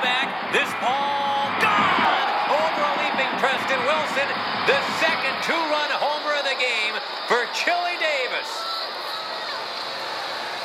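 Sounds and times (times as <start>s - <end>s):
stadium crowd cheering: 0.0s - 10.6s
speech: 3.4s - 9.1s.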